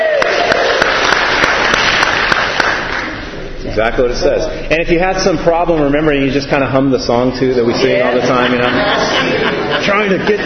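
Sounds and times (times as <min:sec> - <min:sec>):
audience applause: 0:00.0 - 0:03.3
speech: 0:03.8 - 0:10.4
laughter: 0:07.6 - 0:10.4.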